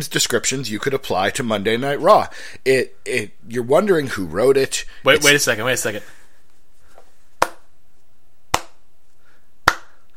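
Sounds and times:
speech: 0.0 - 6.2
slow clap: 9.6 - 10.0.

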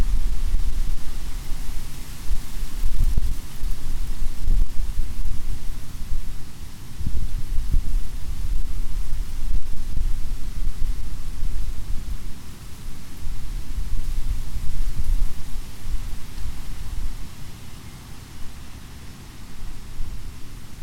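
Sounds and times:
wind through an oak and hickory stand beside a mill pond: 0.0 - 20.8.

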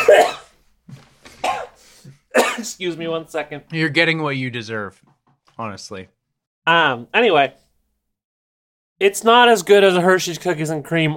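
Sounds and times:
coughing after choking on an almond: 0.0 - 0.6, 1.4 - 2.8
speech: 2.6 - 7.6, 9.0 - 11.1.

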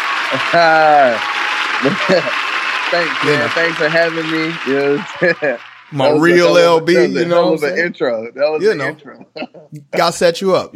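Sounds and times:
audience applause welcoming a guest onto a show: 0.0 - 7.7
person cheering loudly: 0.3 - 2.4, 3.1 - 3.6, 6.0 - 7.8, 8.7 - 9.0
laughter: 0.3 - 7.8, 8.6 - 10.4
speech: 0.3 - 10.7.

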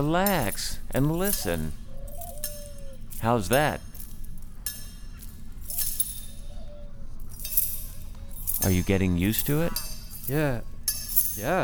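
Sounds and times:
speech: 0.0 - 1.8, 3.2 - 3.9, 8.6 - 10.7, 11.4 - 11.6
metal handcuffs clinking: 0.0 - 11.6.

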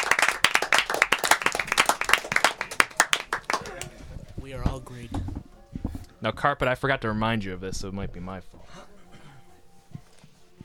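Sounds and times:
audience applause: 0.0 - 4.0
speech: 4.8 - 5.2, 6.2 - 8.9.

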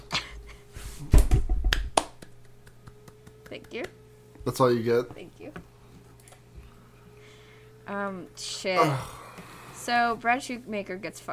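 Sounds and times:
scattered hand claps: 1.3 - 4.0
speech: 3.7 - 5.6, 7.9 - 9.2, 9.8 - 11.3.

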